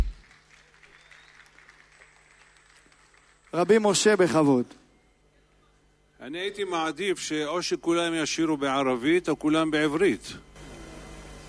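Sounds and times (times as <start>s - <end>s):
audience applause: 0.0s - 4.1s
speech: 3.5s - 4.8s, 6.3s - 10.5s.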